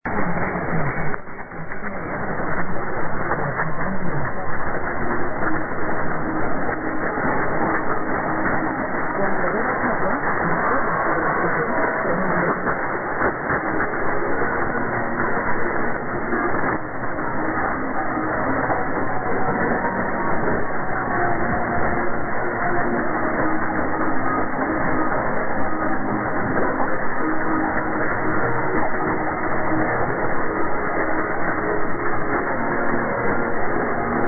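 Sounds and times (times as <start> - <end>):
RNE1 Spain radio station ident: 0.1 - 34.2.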